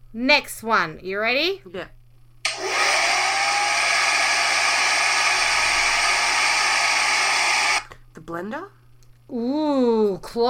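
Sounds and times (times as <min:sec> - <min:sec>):
speech: 0:00.1 - 0:02.0, 0:08.2 - 0:10.4
hair dryer running: 0:02.5 - 0:07.9.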